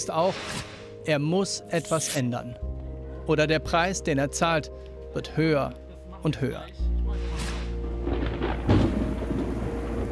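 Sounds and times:
speech: 0.0s - 6.9s
rain: 7.5s - 10.0s
thunderstorm: 7.9s - 10.0s.

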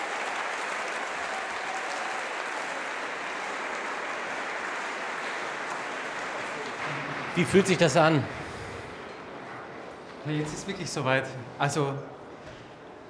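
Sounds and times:
standing ovation applause from concert audience: 0.0s - 9.0s
speech: 7.4s - 8.4s, 10.3s - 12.2s.

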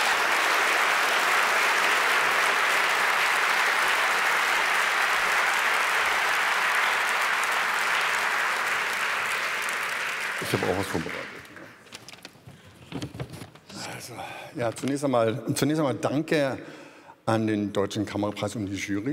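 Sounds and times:
audience applause: 0.0s - 11.9s
speech: 10.5s - 11.4s, 14.5s - 19.1s.

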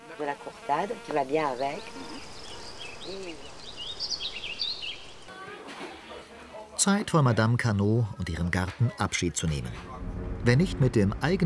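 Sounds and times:
bees buzzing in a garden: 0.0s - 5.3s
speech: 0.2s - 2.4s, 3.1s - 3.6s, 6.8s - 11.4s.

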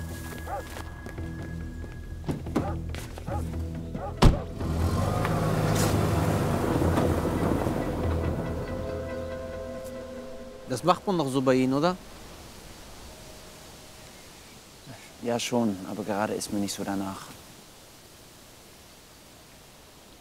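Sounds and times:
road noise: 0.0s - 17.4s
dog barking faintly: 0.4s - 0.7s, 2.6s - 4.5s
car engine rumble as the car pulls away: 1.8s - 10.8s
car door thudding shut: 4.0s - 6.1s
speech: 10.7s - 12.2s, 15.2s - 17.4s.

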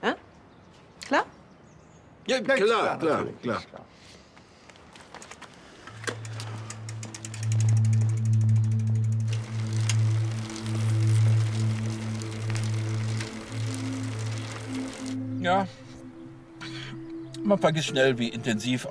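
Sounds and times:
speech: 2.3s - 4.0s, 15.4s - 15.8s, 17.5s - 18.9s
bicycle freewheel ratcheting as a rider circles a lake: 6.0s - 15.2s
steady low hum: 6.1s - 16.6s.

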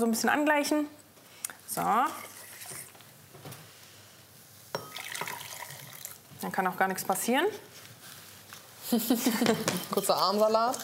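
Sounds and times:
speech: 0.0s - 1.0s, 1.7s - 2.3s, 6.4s - 7.7s, 8.9s - 10.8s
pouring hot liquid into starch mixture: 2.1s - 3.0s, 4.8s - 6.3s.

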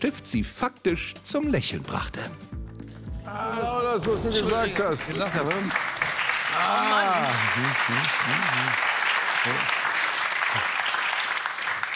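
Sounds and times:
speech: 0.0s - 2.6s, 3.3s - 5.9s, 6.6s - 9.8s
audience applause: 4.2s - 11.9s.

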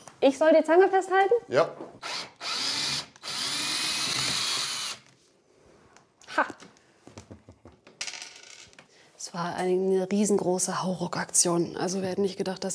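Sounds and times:
speech: 0.2s - 2.1s, 9.4s - 12.7s
cordless screwdriver running: 2.0s - 5.1s.

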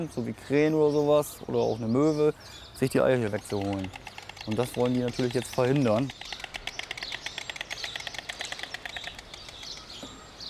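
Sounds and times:
speech: 0.0s - 6.4s
white stork bill clattering: 2.8s - 10.4s.

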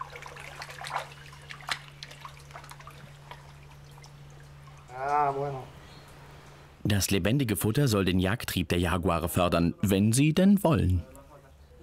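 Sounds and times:
water splashing as fish are tipped into a stream: 0.0s - 6.4s
steady low hum: 0.0s - 11.8s
speech: 6.9s - 11.1s.

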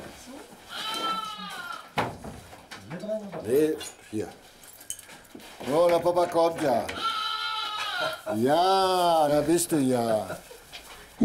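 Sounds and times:
rustling: 0.0s - 11.2s
lamb bleating: 0.7s - 1.9s, 6.9s - 8.3s
speech: 3.2s - 4.5s, 5.4s - 7.1s, 8.0s - 10.5s.

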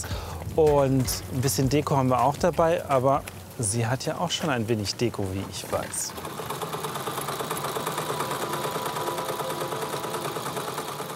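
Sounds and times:
speech: 0.6s - 6.4s
sewing machine stitching small lavender-filled pillows: 5.7s - 11.1s.

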